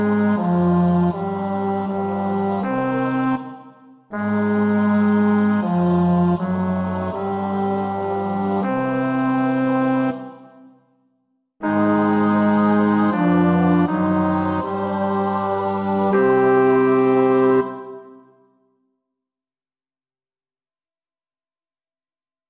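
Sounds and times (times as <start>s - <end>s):
bass: 0.0s - 3.4s, 4.1s - 10.3s, 11.6s - 17.9s.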